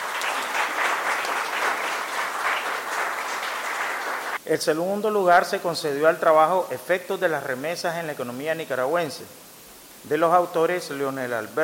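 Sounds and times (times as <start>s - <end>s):
audience applause: 0.0s - 4.4s
speech: 4.5s - 9.4s, 10.0s - 11.6s.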